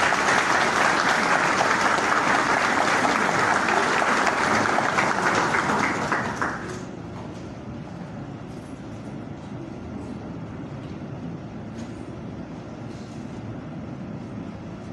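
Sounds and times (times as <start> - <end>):
audience applause: 0.0 - 6.9.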